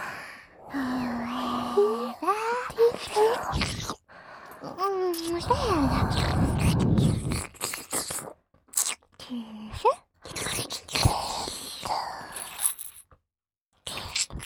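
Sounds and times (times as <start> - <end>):
ASMR whispering: 0.8 - 8.3, 9.2 - 12.6.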